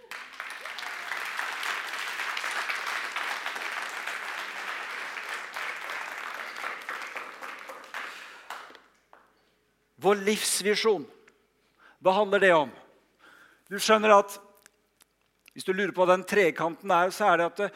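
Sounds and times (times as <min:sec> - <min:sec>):
audience applause: 0:00.0 - 0:08.8
speech: 0:10.0 - 0:11.2, 0:12.0 - 0:12.8, 0:13.7 - 0:14.4, 0:15.6 - 0:17.7.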